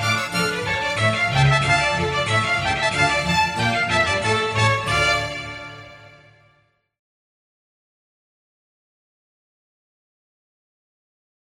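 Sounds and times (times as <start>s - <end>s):
easy listening and classical music: 0.0s - 6.6s.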